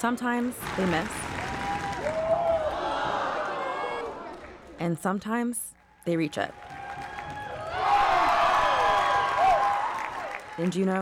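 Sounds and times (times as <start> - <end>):
speech: 0.0 - 1.2, 4.8 - 6.6, 10.6 - 11.0
indoor gym crowd clapping in rhythm: 0.3 - 4.8, 6.5 - 11.0
voices and cheers: 0.9 - 4.6, 6.5 - 10.8.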